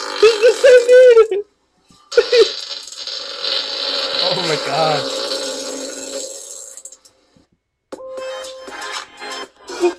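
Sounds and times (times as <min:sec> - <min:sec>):
loud fart: 0:00.0 - 0:01.3, 0:02.1 - 0:06.8.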